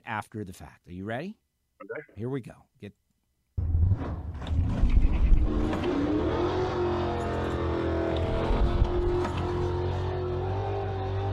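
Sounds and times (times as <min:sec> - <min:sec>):
speech: 0:00.1 - 0:03.0
1969 Camaro with a four-speed racing at Palm Beach: 0:03.6 - 0:11.3.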